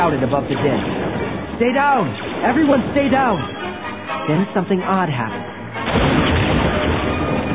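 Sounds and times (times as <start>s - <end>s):
explosion: 0.0s - 3.6s, 5.8s - 7.5s
speech: 0.0s - 6.4s.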